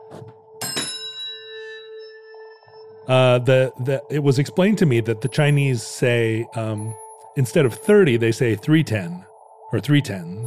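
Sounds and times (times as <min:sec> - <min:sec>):
bells played as a Chinese chord: 0:00.6 - 0:08.1
speech: 0:03.1 - 0:10.4.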